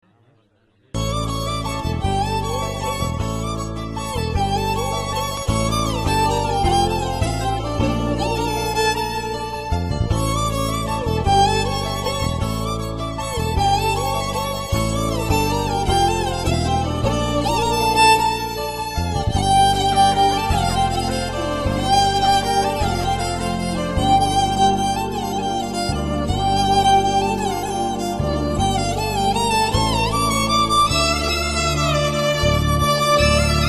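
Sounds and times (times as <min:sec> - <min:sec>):
Tamil background music ringtone: 0:01.0 - 0:33.6.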